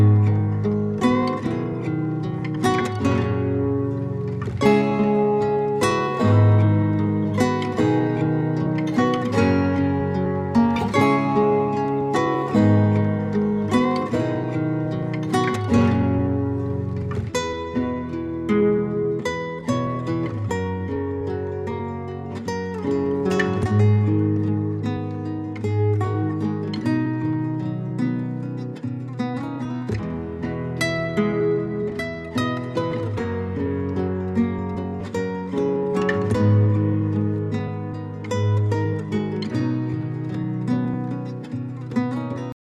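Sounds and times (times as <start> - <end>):
session guitar playing: 0.0 - 42.6.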